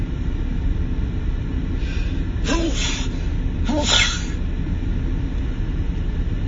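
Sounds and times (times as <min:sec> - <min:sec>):
low rumbling background: 0:00.0 - 0:06.4
person sneezing away from the microphone: 0:02.4 - 0:04.4.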